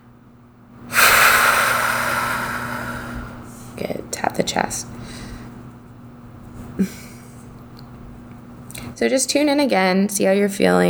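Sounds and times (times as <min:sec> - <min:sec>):
deep breath during a guided tapping exercise: 0:00.9 - 0:03.8, 0:05.0 - 0:05.6
speech: 0:03.8 - 0:05.2, 0:06.8 - 0:07.0, 0:09.0 - 0:10.8.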